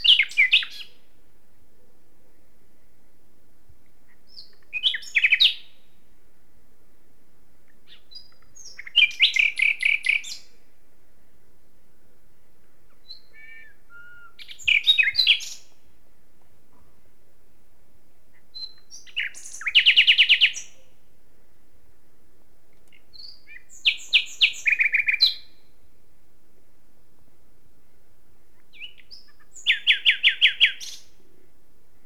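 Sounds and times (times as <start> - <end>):
Common nightingale singing: 0.0 - 1.1, 3.8 - 6.0, 7.6 - 10.7, 12.6 - 15.9, 18.3 - 21.0, 22.7 - 25.9, 27.8 - 32.0.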